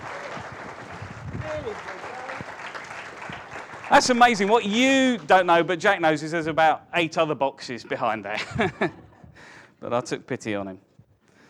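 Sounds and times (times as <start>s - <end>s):
audience round of applause: 0.0s - 5.6s
speech: 1.6s - 2.1s, 3.9s - 9.0s, 9.8s - 10.9s
laughter: 8.3s - 9.3s.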